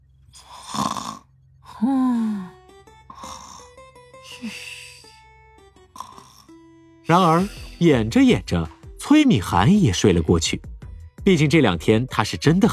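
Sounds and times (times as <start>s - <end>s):
voice imitating snoring: 0.4s - 2.5s, 3.1s - 5.0s, 5.9s - 7.8s
speech: 1.8s - 2.5s, 4.4s - 4.7s, 7.1s - 12.7s.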